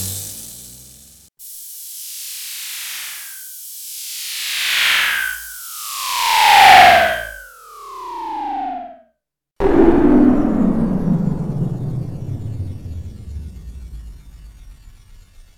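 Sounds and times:
riser sweeps: 4.5 - 8.9, 9.6 - 13.5.

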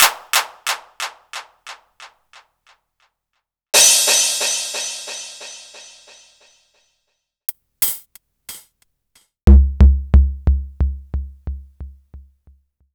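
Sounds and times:
Korg Electribe ER-1 drum machine kit: 0.0 - 1.8, 3.8 - 6.3, 7.8 - 8.8, 9.5 - 12.6.

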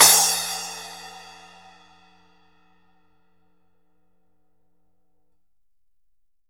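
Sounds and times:
splash cymbal: 0.0 - 1.9.

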